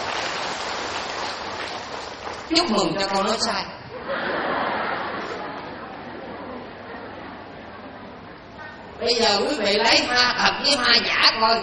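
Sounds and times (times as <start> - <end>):
audience applause: 0.0 - 2.6
speech: 2.5 - 4.4, 9.0 - 11.6
laughter: 3.9 - 6.4.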